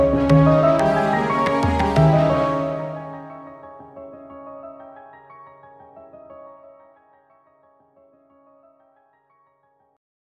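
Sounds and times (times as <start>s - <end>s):
Indian dramatic music: 0.0s - 3.8s.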